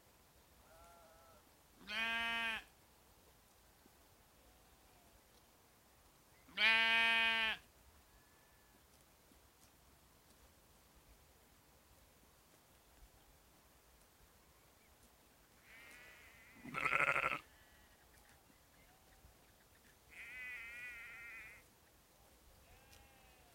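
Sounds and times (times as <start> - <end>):
sheep and lambs bleating: 0.7 - 2.7, 6.6 - 7.6, 15.6 - 17.5, 20.1 - 21.6.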